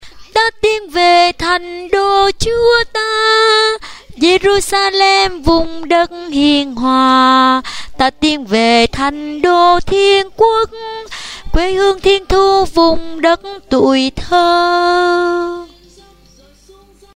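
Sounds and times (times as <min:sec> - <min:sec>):
soprano and alto singing: 0:00.4 - 0:17.1.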